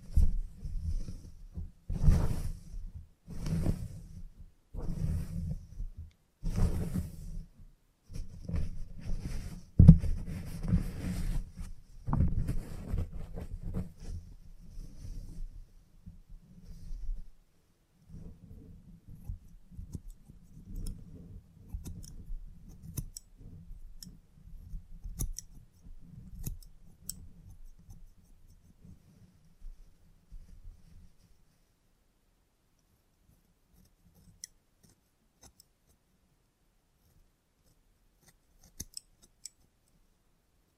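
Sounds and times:
low rustling: 0:00.0 - 0:17.4
salon haircut scissor snips: 0:21.7 - 0:23.3, 0:25.0 - 0:25.6, 0:38.2 - 0:39.7.

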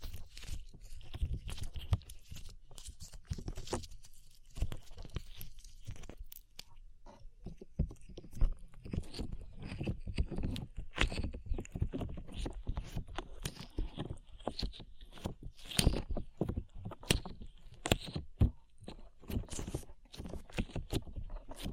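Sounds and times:
sticky slime being squished and pulled: 0:00.0 - 0:21.7.

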